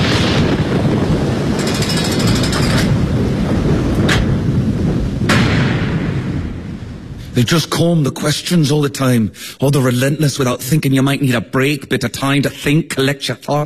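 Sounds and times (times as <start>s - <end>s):
sharp cracks of thunder: 0.0s - 9.1s
thunder rumbling in a storm: 0.0s - 12.1s
speech: 7.4s - 13.6s.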